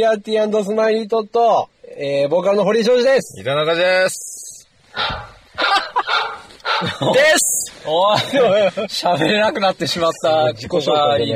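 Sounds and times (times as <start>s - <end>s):
speech: 0.0s - 4.4s, 5.0s - 5.3s, 6.7s - 11.3s
dog barking: 4.9s - 7.1s
laughter: 5.0s - 10.1s.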